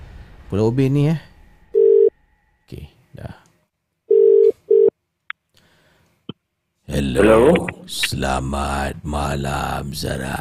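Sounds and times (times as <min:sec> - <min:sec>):
speech: 0:00.5 - 0:01.3, 0:02.7 - 0:03.4, 0:07.0 - 0:10.3
telephone line tones as a radio show dials out: 0:01.8 - 0:02.1, 0:04.1 - 0:04.9
short sounds: 0:06.9 - 0:08.2.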